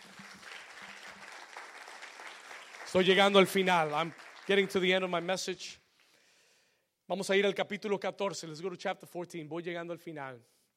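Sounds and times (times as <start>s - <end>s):
audience applause: 0.0s - 5.4s
speech: 2.9s - 5.8s, 7.1s - 10.6s.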